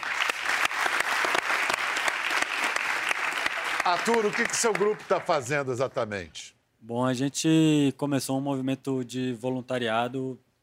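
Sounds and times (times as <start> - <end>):
audience applause: 0.0 - 5.6
speech: 3.8 - 10.4.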